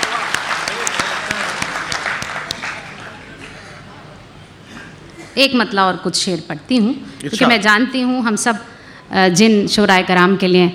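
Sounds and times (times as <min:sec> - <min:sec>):
audience applause: 0:00.0 - 0:03.6
speech: 0:05.4 - 0:10.7.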